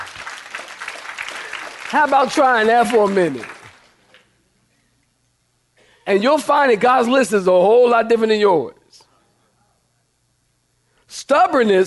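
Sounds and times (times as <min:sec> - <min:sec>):
audience clapping hands: 0:00.0 - 0:04.2
speech: 0:01.9 - 0:03.6, 0:06.1 - 0:08.8, 0:11.1 - 0:11.8.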